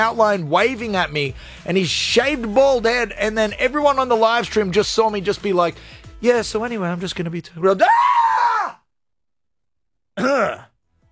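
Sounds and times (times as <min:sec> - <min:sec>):
speech: 0:00.0 - 0:08.2, 0:10.2 - 0:10.7
man screaming in fright: 0:07.7 - 0:08.8.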